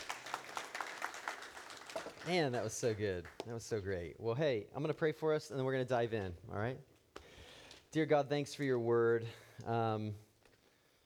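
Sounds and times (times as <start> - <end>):
audience applause: 0.0 - 3.4
speech: 2.2 - 6.9, 7.9 - 10.2.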